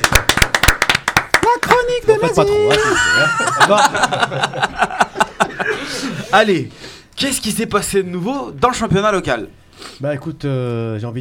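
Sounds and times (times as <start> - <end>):
applause: 0.0 - 1.9
speech: 2.2 - 4.9, 5.9 - 11.1
laughter: 2.6 - 6.4.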